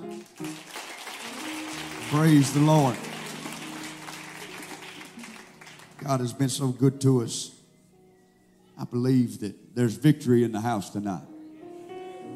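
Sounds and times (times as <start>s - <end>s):
crowd applause: 0.0s - 6.4s
speech: 2.1s - 3.1s, 6.0s - 7.6s, 8.8s - 11.3s.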